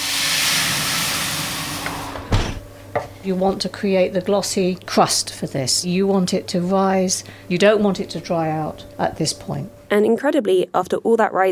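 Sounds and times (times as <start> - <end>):
water added to hot oven hissing: 0.0 - 2.4
speech: 3.2 - 11.5.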